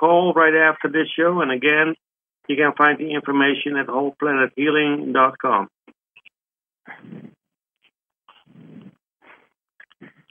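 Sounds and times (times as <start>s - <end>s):
speech: 0.0s - 5.8s, 6.9s - 7.4s, 10.0s - 10.2s
breathing into the microphone: 6.9s - 7.4s, 8.3s - 10.2s.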